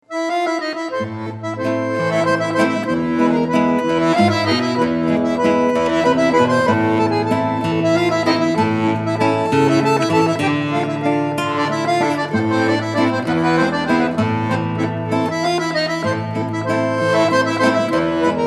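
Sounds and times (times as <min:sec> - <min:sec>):
South American waltz music: 0:00.1 - 0:18.4.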